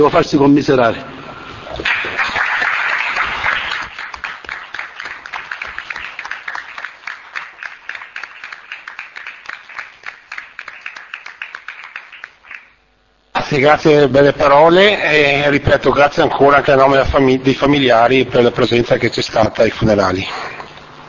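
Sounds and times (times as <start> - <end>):
speech: 0.0 - 2.2, 13.5 - 20.5
audience applause: 1.8 - 12.8.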